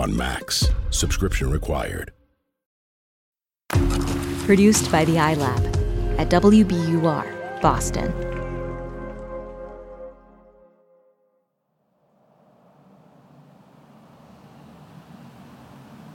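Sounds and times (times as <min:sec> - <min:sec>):
speech: 0:00.0 - 0:02.2, 0:04.5 - 0:08.4
traffic on the Williamsburg Bridge: 0:12.0 - 0:16.1.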